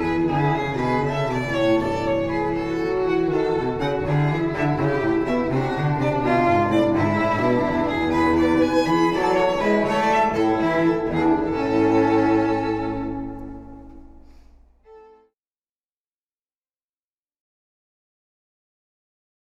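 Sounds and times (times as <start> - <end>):
string trio playing a gigue for a wedding ceremony: 0.0 - 15.2.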